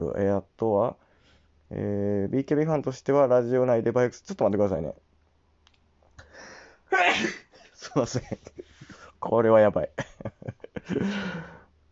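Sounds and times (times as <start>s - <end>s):
speech: 0.0s - 1.0s, 1.7s - 5.1s, 6.9s - 11.6s
sneeze: 7.0s - 7.5s
laughter: 7.8s - 9.0s, 10.0s - 11.5s.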